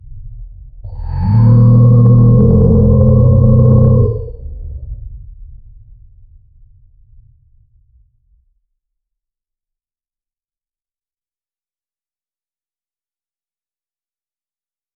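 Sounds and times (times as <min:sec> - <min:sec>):
deep guttural roar bellow: 0:00.9 - 0:04.7.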